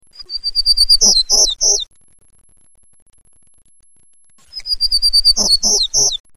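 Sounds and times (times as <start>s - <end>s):
Townsend's Warbler: 0.2s - 1.9s, 4.4s - 6.3s.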